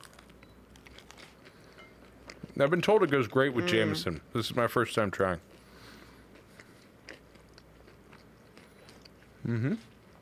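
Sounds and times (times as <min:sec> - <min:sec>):
chewing chicken fingers: 0:00.0 - 0:03.5, 0:05.2 - 0:10.2
speech: 0:02.6 - 0:05.6, 0:09.5 - 0:09.9
person humming mmm of enjoyment: 0:09.4 - 0:10.0.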